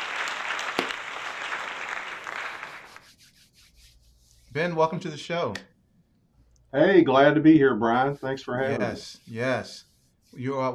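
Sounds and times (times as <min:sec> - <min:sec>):
audience applause greeting a guest on a music television interview show: 0:00.0 - 0:03.0
speech: 0:04.5 - 0:05.7, 0:06.7 - 0:10.7.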